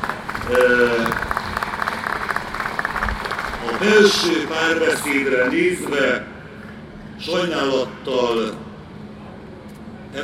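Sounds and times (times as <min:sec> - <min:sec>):
applause: 0:00.0 - 0:06.2
speech: 0:00.5 - 0:01.3, 0:03.8 - 0:06.3, 0:07.2 - 0:08.6.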